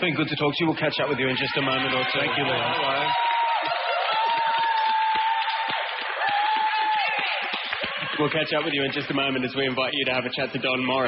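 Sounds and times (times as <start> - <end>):
speech: 0.0 - 3.3, 8.2 - 11.0
audience applause and cheering: 1.0 - 10.0.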